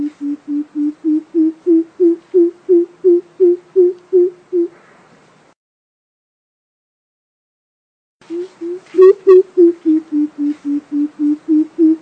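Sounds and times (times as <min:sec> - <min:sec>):
coucal giving deep hollow hoots: 0:00.0 - 0:04.8, 0:08.3 - 0:12.0.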